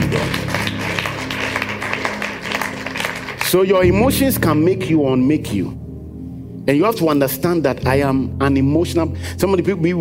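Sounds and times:
audience clapping hands: 0:00.0 - 0:04.3
speech: 0:03.5 - 0:05.8, 0:06.7 - 0:10.0.

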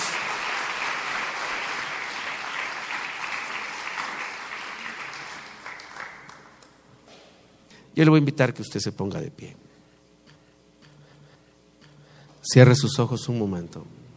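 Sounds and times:
audience applauding vigorously: 0:00.0 - 0:06.8
speech: 0:08.0 - 0:09.7, 0:12.5 - 0:14.0.

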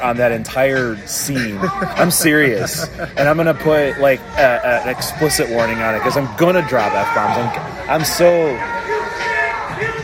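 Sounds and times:
speech: 0:00.0 - 0:08.8
rowdy crowd chatter: 0:00.0 - 0:10.0
laughter: 0:01.2 - 0:03.8
raised shouts: 0:05.1 - 0:10.0.

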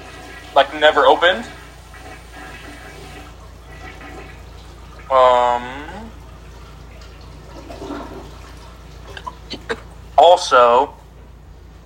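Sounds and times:
loud toilet flushing: 0:00.0 - 0:10.9
low hum: 0:00.0 - 0:11.8
running water: 0:00.0 - 0:11.8
speech: 0:00.6 - 0:01.6, 0:05.1 - 0:05.9, 0:10.2 - 0:11.0.

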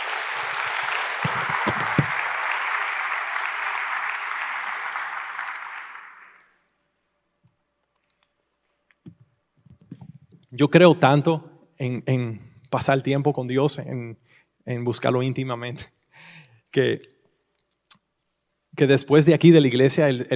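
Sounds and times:
loud audience applause: 0:00.0 - 0:06.6
speech: 0:10.6 - 0:17.1, 0:18.8 - 0:20.3.

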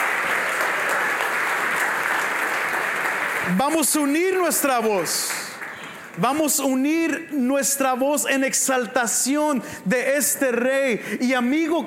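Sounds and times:
audience applauding the choir: 0:00.0 - 0:06.6
speech: 0:03.5 - 0:05.4, 0:06.2 - 0:11.8.

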